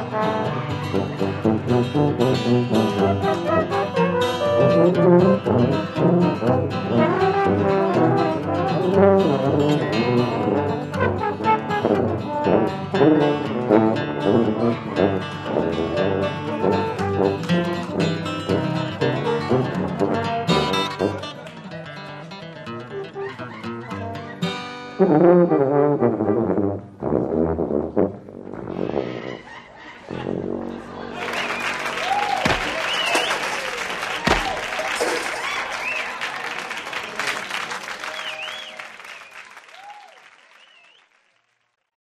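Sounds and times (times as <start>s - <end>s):
tubas playing: 0.0s - 21.4s, 24.9s - 35.3s
laughter: 23.0s - 24.1s, 29.0s - 38.6s.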